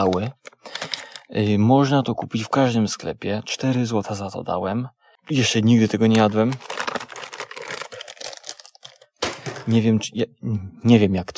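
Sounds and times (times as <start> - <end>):
plastic food package of gummy eyeball candies crinkling and tearing: 0.0 - 1.5, 5.6 - 9.8
speech: 0.0 - 6.8, 9.7 - 11.3.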